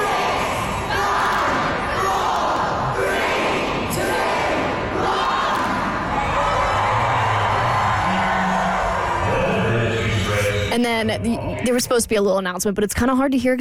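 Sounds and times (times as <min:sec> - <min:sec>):
large crowd of fans cheering and shouting at a train station: 0:00.0 - 0:10.8
speech: 0:11.0 - 0:13.5.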